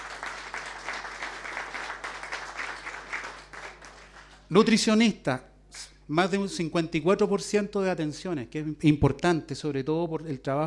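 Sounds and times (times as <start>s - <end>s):
audience applause: 0.0s - 4.5s
speech: 4.5s - 10.6s.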